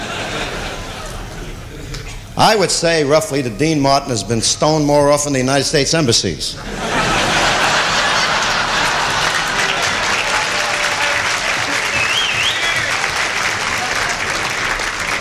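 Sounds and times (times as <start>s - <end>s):
laughter: 0.0s - 2.6s, 6.6s - 15.1s
speech: 2.4s - 7.2s
audience applause: 7.0s - 15.1s
faint whistle: 11.8s - 13.0s.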